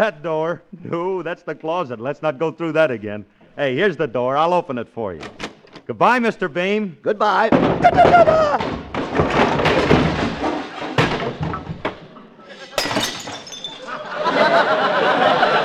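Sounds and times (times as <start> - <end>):
speech: 0.0 - 8.8
man falling down cellar stairs: 7.4 - 14.1
laughter: 12.4 - 12.9, 13.8 - 15.6.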